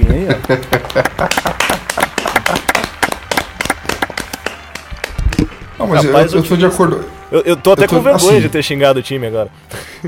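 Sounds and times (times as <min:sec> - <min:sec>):
laughter: 0:00.0 - 0:03.4
speech: 0:00.2 - 0:01.8, 0:05.9 - 0:10.0
applause: 0:00.4 - 0:06.1.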